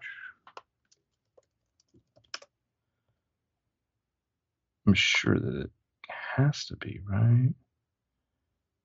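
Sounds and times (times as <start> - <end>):
quiet computer keyboard typing while browsing the iTunes store: 0.4 - 2.6
speech: 4.9 - 5.8, 6.4 - 7.6.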